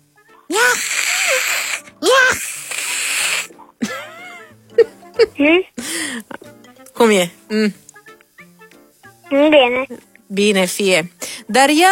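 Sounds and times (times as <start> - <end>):
voice imitating cat frightened by tiger: 0.5 - 3.5
speech: 5.3 - 7.8, 9.3 - 11.9.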